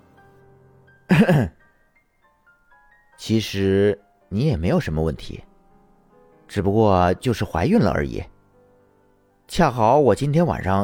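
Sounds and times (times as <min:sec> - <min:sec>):
throat clearing: 0:01.1 - 0:01.6
speech: 0:01.2 - 0:01.6, 0:03.2 - 0:05.5, 0:06.5 - 0:08.3, 0:09.5 - 0:10.8.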